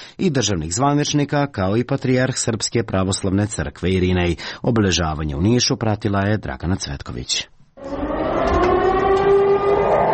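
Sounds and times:
speech: 0:00.2 - 0:08.0
air raid siren at a NATO bombing commemoration on a square in Niš: 0:07.8 - 0:10.1.

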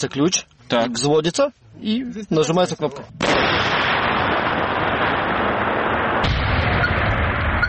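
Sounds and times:
speech: 0:00.0 - 0:03.7
controlled detonation of an aerial bomb: 0:03.2 - 0:07.6.

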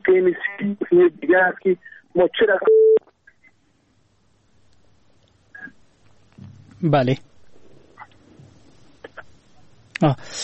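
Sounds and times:
low hiss: 0:00.0 - 0:10.4
speech: 0:00.2 - 0:03.0, 0:06.8 - 0:07.3, 0:10.0 - 0:10.4
telephone tones as a radio caller's line is cut off: 0:02.7 - 0:03.0.

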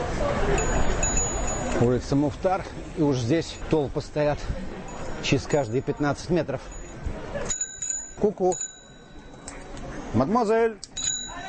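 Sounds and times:
street noise: 0:00.0 - 0:11.4
bicycle bell ringing: 0:00.5 - 0:02.3, 0:04.8 - 0:09.6, 0:10.9 - 0:11.4
speech: 0:01.8 - 0:07.6, 0:08.2 - 0:08.7, 0:10.1 - 0:10.9.

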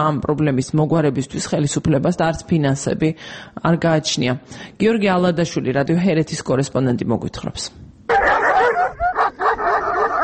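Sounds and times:
speech: 0:00.0 - 0:09.0
stray dogs barking and yipping in Lagodekhi Georgia: 0:08.1 - 0:10.2.

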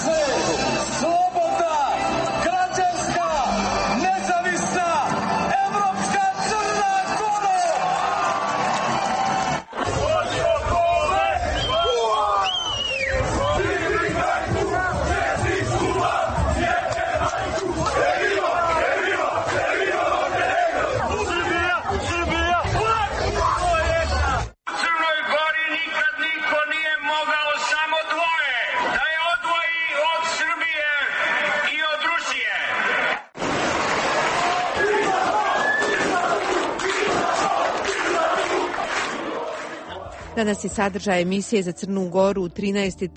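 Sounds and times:
large crowd on a city square cheering and shouting: 0:00.0 - 0:40.4
voices chanting and singing: 0:09.8 - 0:24.4, 0:34.6 - 0:40.4
speech: 0:40.4 - 0:43.1.

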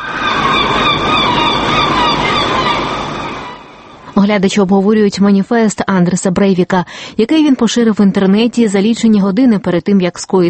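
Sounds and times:
seagulls crying in Oslo: 0:00.0 - 0:04.1
speech: 0:04.2 - 0:10.4.

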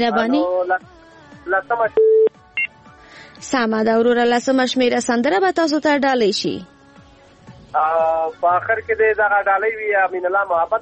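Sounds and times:
speech: 0:00.0 - 0:02.2, 0:03.4 - 0:06.7, 0:07.7 - 0:10.8
touch-tone telephone keypad beeps: 0:02.0 - 0:02.7.

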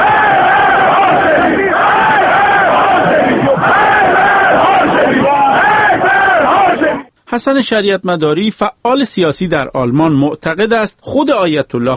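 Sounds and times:
street crowd chanting political slogans: 0:00.0 - 0:07.1
speech: 0:07.4 - 0:11.9.

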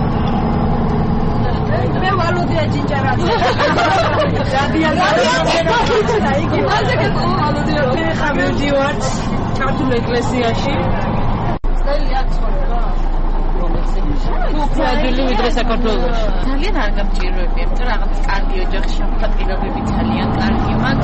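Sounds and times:
bus engine rumble: 0:00.0 - 0:21.0
passengers chattering inside a Munich bus: 0:00.0 - 0:21.0
laughter: 0:03.0 - 0:09.4.

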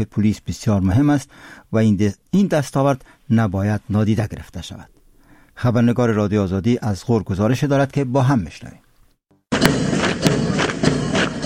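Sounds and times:
speech: 0:00.0 - 0:04.9, 0:05.6 - 0:08.8
marching footsteps in military drill: 0:09.5 - 0:11.4.

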